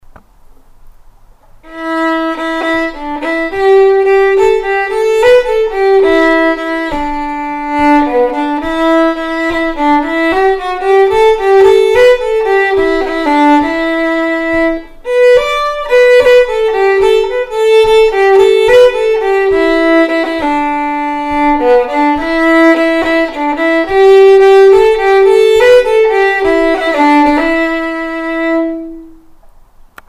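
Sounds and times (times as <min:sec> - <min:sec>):
fiddle playing a waltz: 0:01.7 - 0:29.2.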